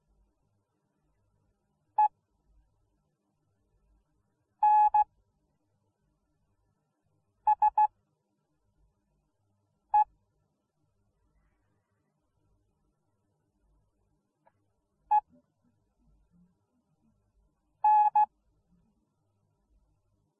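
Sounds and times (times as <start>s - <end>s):
morse code beeps: 4.6s - 5.0s, 7.5s - 7.9s, 17.8s - 18.3s.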